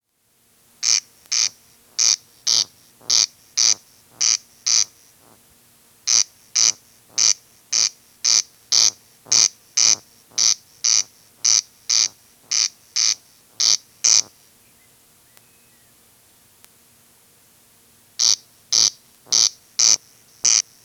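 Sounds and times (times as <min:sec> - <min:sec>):
corncrake giving its dry rasping call: 0:00.8 - 0:05.4, 0:06.1 - 0:14.3, 0:18.2 - 0:20.6.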